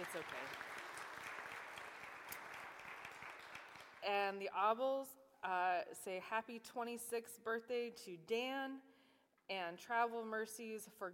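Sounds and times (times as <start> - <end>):
speech: 0.0 - 0.8, 4.0 - 8.9, 9.5 - 11.1
audience applause: 0.0 - 4.0.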